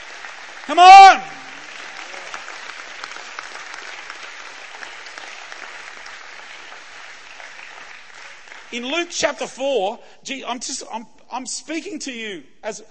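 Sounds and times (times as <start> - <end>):
audience clapping: 0.0 - 9.6
speech: 0.7 - 1.4, 8.7 - 12.8.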